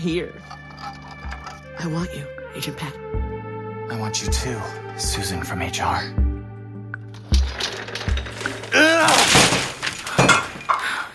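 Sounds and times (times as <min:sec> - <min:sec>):
speech: 0:00.0 - 0:01.0, 0:01.8 - 0:03.2, 0:03.9 - 0:06.2
objects knocked off a desk crashing: 0:07.2 - 0:10.9.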